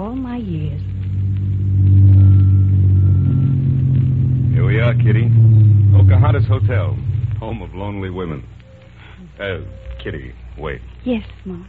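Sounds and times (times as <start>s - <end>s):
speech: 0.0s - 1.0s, 6.0s - 8.6s, 9.4s - 11.6s
car engine revving while driving: 0.6s - 9.4s.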